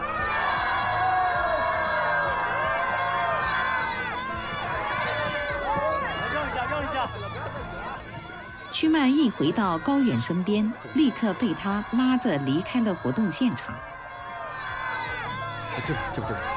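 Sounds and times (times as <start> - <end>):
large crowd cheering and shouting: 0.0 - 16.5
speech: 8.8 - 13.9, 15.8 - 16.5.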